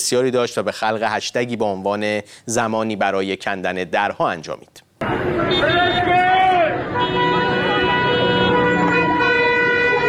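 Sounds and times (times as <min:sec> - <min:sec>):
speech: 0:00.1 - 0:06.0
car horns honking in street protest: 0:05.0 - 0:10.0.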